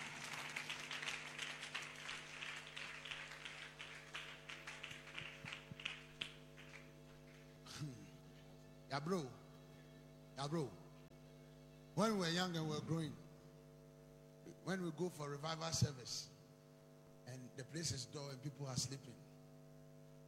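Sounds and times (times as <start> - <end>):
audience clapping: 0.0 - 7.6
constant low electrical hum: 0.0 - 20.2
speech: 8.9 - 9.4, 10.4 - 10.8, 12.0 - 13.2, 14.6 - 16.3, 17.3 - 19.3.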